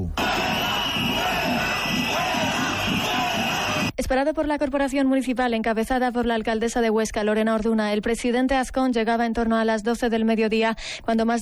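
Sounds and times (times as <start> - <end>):
protesters shouting: 0.2 - 3.9
speech: 4.0 - 11.3.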